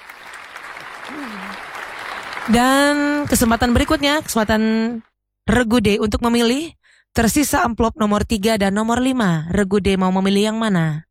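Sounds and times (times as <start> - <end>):
small audience clapping for team C in a quiz contest: 0.0 - 5.0
speech: 1.1 - 1.7, 2.4 - 11.0.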